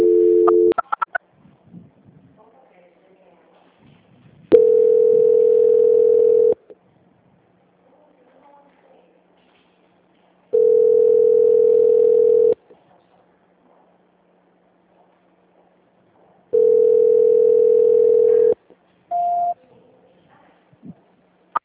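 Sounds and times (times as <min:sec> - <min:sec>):
telephone ringback tone while a call is being transferred: 0:00.0 - 0:01.1, 0:04.5 - 0:06.6, 0:10.6 - 0:12.6, 0:16.6 - 0:19.6.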